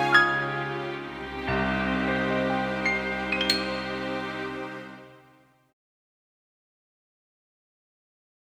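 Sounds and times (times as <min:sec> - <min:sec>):
orchestra through Yamaha SPX90 hall reverb: 0:00.0 - 0:05.1.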